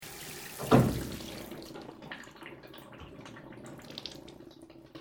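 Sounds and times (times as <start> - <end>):
water draining in Japanese bathroom: 0.0 - 4.9
Japanese shower system water lever deactivating: 0.6 - 1.5.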